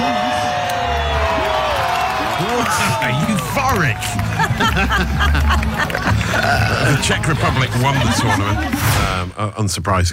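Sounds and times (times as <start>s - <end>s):
voices whooping: 0.0s - 4.5s
crowd cheering and shouting: 0.0s - 9.2s
laughter: 2.5s - 9.3s
speech: 2.7s - 10.1s.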